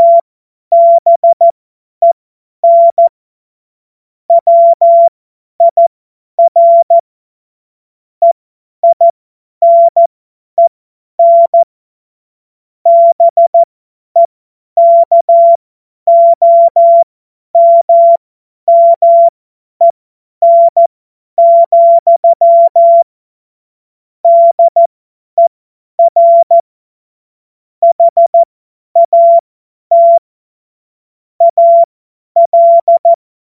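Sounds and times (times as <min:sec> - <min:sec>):
CW Morse code beeps: 0:00.0 - 0:03.1, 0:04.3 - 0:05.8, 0:06.4 - 0:07.0, 0:08.2 - 0:11.7, 0:12.9 - 0:19.3, 0:20.4 - 0:23.0, 0:24.3 - 0:26.6, 0:27.8 - 0:30.2, 0:31.4 - 0:33.2.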